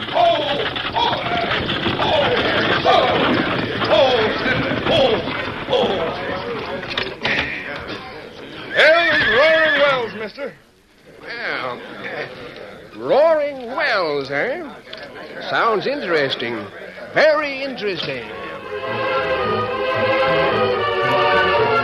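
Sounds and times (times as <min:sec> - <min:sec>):
stagecoach wheels and horses' hooves clattering: 0:00.0 - 0:10.1
voices calling out: 0:00.0 - 0:21.3
speech: 0:15.5 - 0:19.0.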